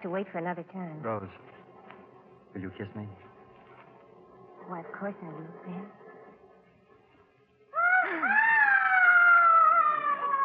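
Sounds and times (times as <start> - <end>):
speech: 0.0 - 1.7, 2.5 - 3.3, 4.7 - 6.0
high-pitched wailing scream: 7.7 - 10.4.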